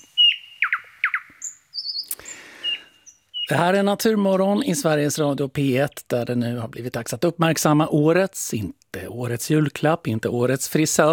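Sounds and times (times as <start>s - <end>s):
nightingale singing: 0.0s - 6.6s
speech: 3.5s - 11.1s.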